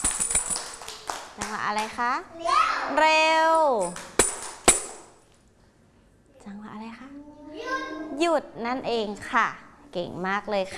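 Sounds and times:
tambourine hits giving a rhythm signal: 0.0s - 0.8s
speech: 1.4s - 4.1s, 8.2s - 10.7s.

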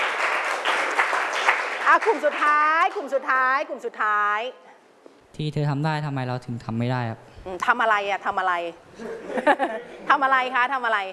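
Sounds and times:
audience clapping: 0.0s - 2.9s
speech: 1.9s - 4.6s, 5.4s - 11.1s
laughter: 9.0s - 10.1s.

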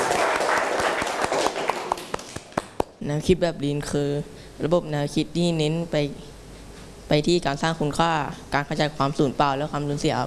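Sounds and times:
classroom of students clapping: 0.0s - 3.0s
speech: 3.0s - 6.3s, 7.1s - 10.2s.

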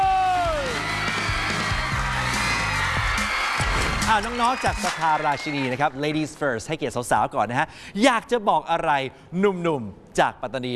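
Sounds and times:
audience whoops and yells: 0.0s - 5.7s
audience applause welcoming two school teams at a competition: 0.0s - 6.6s
speech: 4.1s - 10.7s.

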